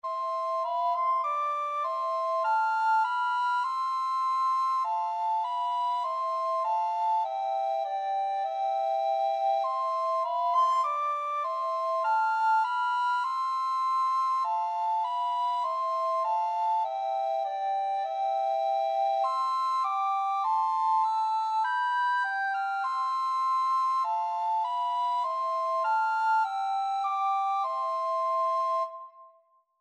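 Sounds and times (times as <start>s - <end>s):
recorder duet: 0.1s - 29.2s.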